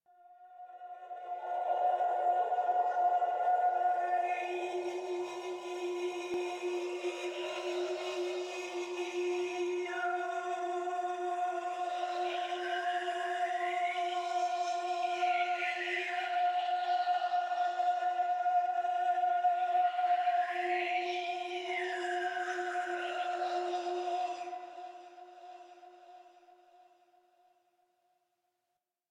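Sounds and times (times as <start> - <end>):
choir singing: 0.6 - 26.2.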